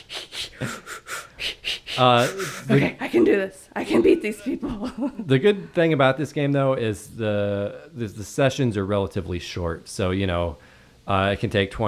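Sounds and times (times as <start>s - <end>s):
person imitating Lamaze breathing with short breathy puffs: 0.0s - 3.0s
speech: 0.6s - 0.9s, 2.0s - 11.8s.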